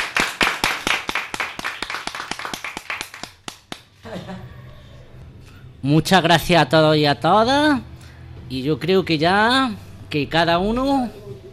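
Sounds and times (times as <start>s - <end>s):
applause: 0.0s - 3.9s
speech: 4.1s - 4.6s, 5.8s - 7.9s, 8.5s - 11.2s.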